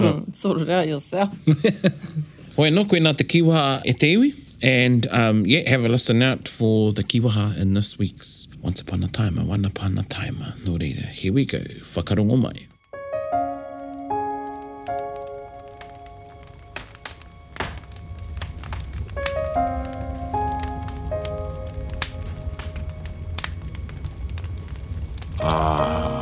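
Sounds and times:
speech: 0.0s - 12.7s
crackling fire: 0.0s - 26.1s
laughter: 1.5s - 2.4s.

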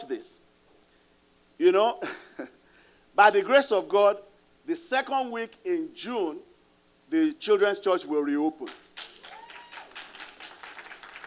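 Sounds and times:
speech: 0.0s - 0.5s, 1.6s - 2.6s, 3.2s - 6.5s, 7.1s - 9.1s
audience clapping and applauding: 8.7s - 11.2s.

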